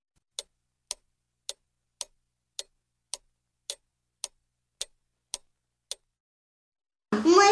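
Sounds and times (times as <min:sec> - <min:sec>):
large clock ticking: 0:00.2 - 0:06.2.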